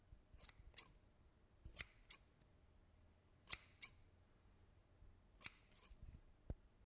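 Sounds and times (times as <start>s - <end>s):
scissors: 0.4s - 1.0s, 1.7s - 2.3s, 3.5s - 4.0s, 5.4s - 6.0s.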